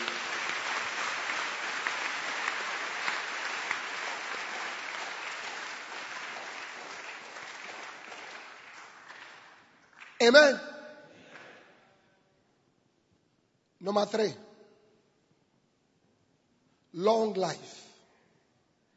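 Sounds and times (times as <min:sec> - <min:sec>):
audience clapping: 0:00.0 - 0:10.6
speech: 0:10.2 - 0:10.7, 0:13.9 - 0:14.4, 0:17.0 - 0:17.8.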